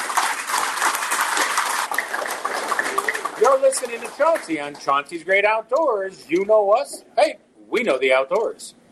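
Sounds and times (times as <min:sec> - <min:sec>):
audience applause for a guest: 0:00.0 - 0:05.1
speech: 0:03.4 - 0:08.8.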